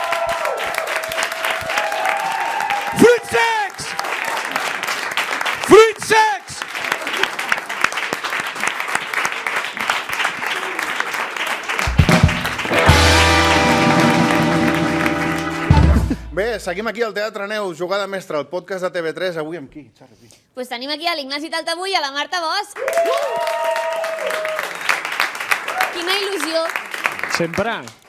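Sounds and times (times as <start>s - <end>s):
audience applause: 0.0s - 16.4s, 22.8s - 28.0s
speech: 16.6s - 24.6s, 26.0s - 28.0s.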